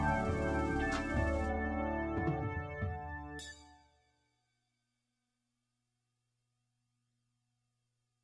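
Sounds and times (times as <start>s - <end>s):
drums with flanger effect: 0.0s - 3.4s.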